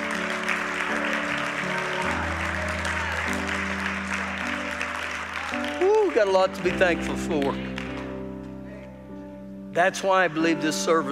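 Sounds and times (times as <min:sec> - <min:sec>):
audience clapping: 0:00.0 - 0:08.5
speech: 0:06.2 - 0:07.7, 0:09.8 - 0:11.1.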